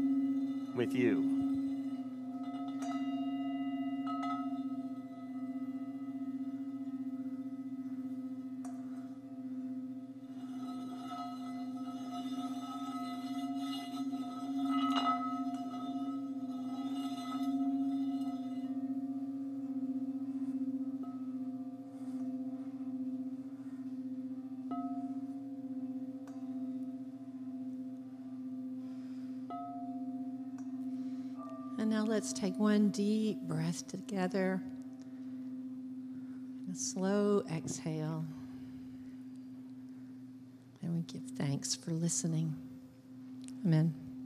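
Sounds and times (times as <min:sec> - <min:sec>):
dissonant ringing bells: 0:00.0 - 0:44.2
speech: 0:00.8 - 0:01.4, 0:32.3 - 0:34.7, 0:36.8 - 0:38.4, 0:41.1 - 0:42.7, 0:43.6 - 0:44.0.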